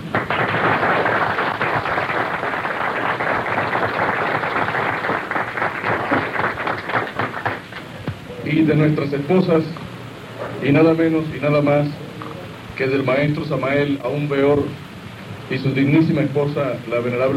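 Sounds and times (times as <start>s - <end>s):
audience applauding: 0.0s - 8.1s
speech: 8.5s - 9.8s, 10.6s - 12.0s, 12.8s - 14.8s, 15.5s - 17.3s.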